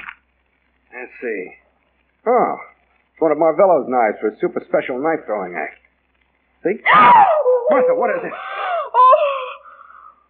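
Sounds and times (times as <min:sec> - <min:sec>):
speech: 0:01.0 - 0:01.6, 0:02.2 - 0:05.8, 0:06.6 - 0:08.6
woman screaming: 0:06.8 - 0:09.7.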